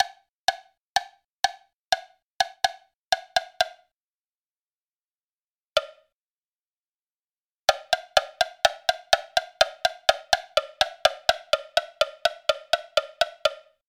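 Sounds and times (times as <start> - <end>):
woodblock: 0.0 - 3.9, 5.8 - 6.1, 7.7 - 13.8.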